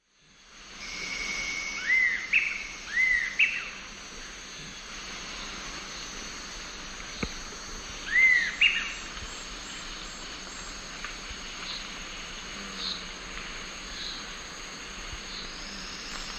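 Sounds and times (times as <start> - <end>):
Eastern sirystes whistled call: 0.8 - 3.8.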